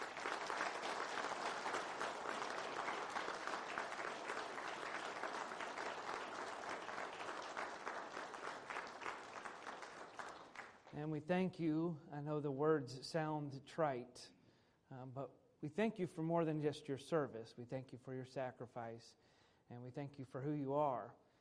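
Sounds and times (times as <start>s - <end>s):
audience applause: 0.0s - 10.9s
speech: 11.0s - 21.2s.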